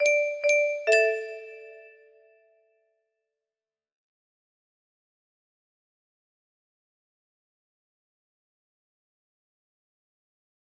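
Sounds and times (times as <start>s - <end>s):
music box melody: 0.0s - 2.1s.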